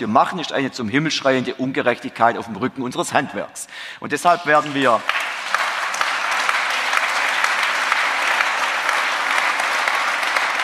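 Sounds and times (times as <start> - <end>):
speech: 0.0 - 5.3
audience applause: 4.6 - 10.6.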